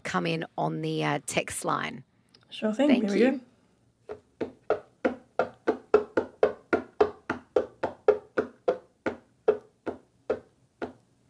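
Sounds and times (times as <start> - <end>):
speech: 0.1 - 3.5
tapping on a hollow box: 4.1 - 11.0.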